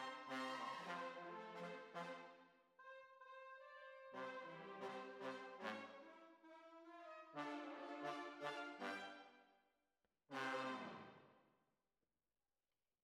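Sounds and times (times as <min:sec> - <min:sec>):
tuba: 0:00.0 - 0:09.3, 0:10.3 - 0:11.3.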